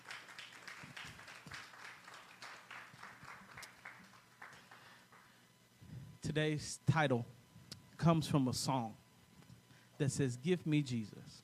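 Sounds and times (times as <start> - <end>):
audience applause: 0.0 - 5.3
speech: 6.2 - 7.4, 8.0 - 9.0, 10.0 - 11.4.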